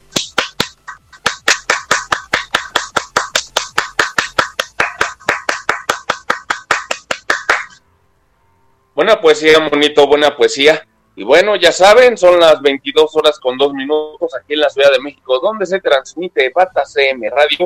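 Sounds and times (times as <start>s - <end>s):
applause: 0.2s - 7.8s
speech: 9.0s - 17.6s.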